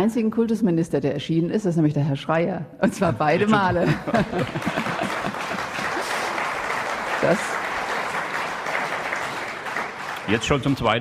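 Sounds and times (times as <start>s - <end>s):
speech: 0.0s - 5.0s, 7.2s - 7.6s, 10.3s - 10.9s
laughter: 2.9s - 6.6s
crowd applauding: 3.4s - 10.9s.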